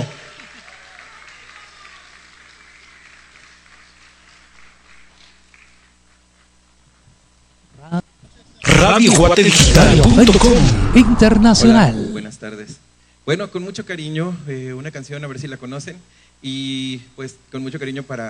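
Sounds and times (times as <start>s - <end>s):
audience applause: 0.0s - 5.8s
speech: 9.0s - 12.6s, 13.3s - 18.2s.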